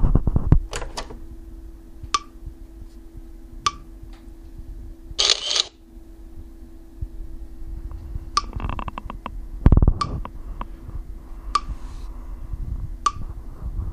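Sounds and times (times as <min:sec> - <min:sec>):
low electronic hum: 0:00.0 - 0:13.9
camera-type reading device mechanical clicks: 0:05.2 - 0:05.7
shutter-like noise: 0:05.2 - 0:05.8.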